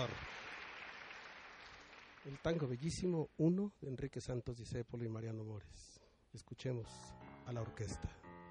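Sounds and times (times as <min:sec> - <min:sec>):
speech: 0:00.0 - 0:00.4, 0:02.2 - 0:08.2
audience applauding a tango performance: 0:00.0 - 0:03.0.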